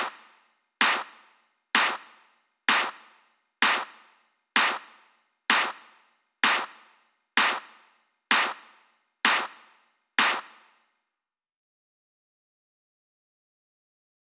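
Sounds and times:
clap at 128 BPM: 0:00.0 - 0:10.8.

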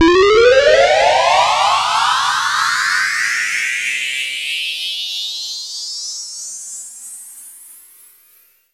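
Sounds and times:
synth sweeps: 0:00.0 - 0:03.6.

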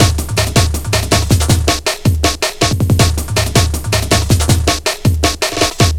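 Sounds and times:
drum loop: 0:00.0 - 0:05.9.

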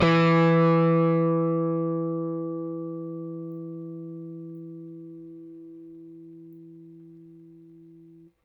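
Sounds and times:
Rickenbacker bass guitar: 0:00.0 - 0:08.3.

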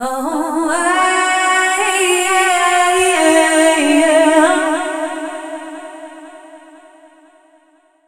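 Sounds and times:
female dance vocals: 0:00.0 - 0:06.2.

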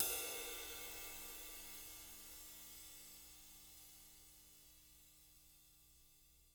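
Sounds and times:
live drums: 0:00.0 - 0:01.8.

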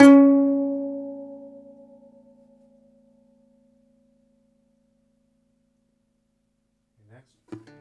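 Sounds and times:
segundo domra plucked strings: 0:00.0 - 0:02.5, 0:07.5 - 0:07.7.

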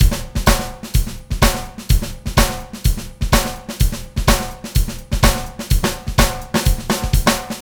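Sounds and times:
samba dance loop: 0:00.0 - 0:07.6.

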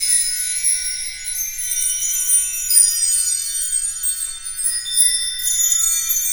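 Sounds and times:
bell tree: 0:00.0 - 0:06.3.

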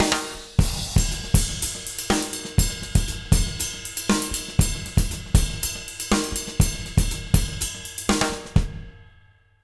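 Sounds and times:
J-rock drum loop: 0:00.0 - 0:09.1.

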